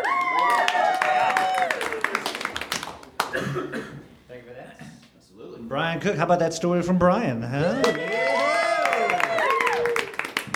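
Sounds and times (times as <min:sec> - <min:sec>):
audience applause: 0:00.0 - 0:03.4, 0:07.8 - 0:10.5
speech: 0:05.7 - 0:08.5.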